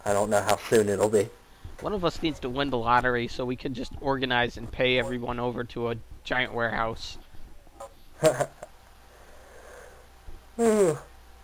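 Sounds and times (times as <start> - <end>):
speech: 0.0 - 7.2, 8.2 - 8.6, 10.6 - 11.1
cat yawning: 10.6 - 11.1.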